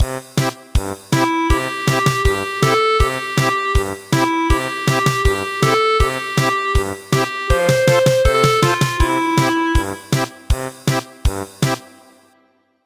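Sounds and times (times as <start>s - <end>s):
German polka music: 0.2s - 11.8s.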